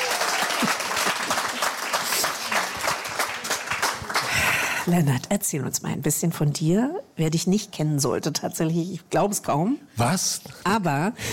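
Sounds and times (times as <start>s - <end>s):
audience applause: 0.0s - 4.9s
speech: 4.9s - 11.3s.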